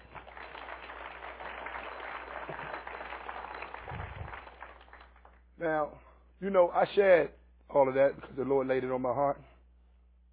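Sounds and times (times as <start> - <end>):
audience clapping in praise: 0.0 - 5.5
speech: 5.6 - 9.5.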